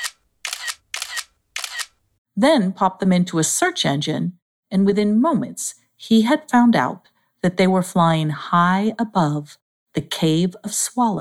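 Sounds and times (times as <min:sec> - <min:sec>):
tablet camera snapping photos: 0:00.0 - 0:02.0
speech: 0:02.4 - 0:11.2.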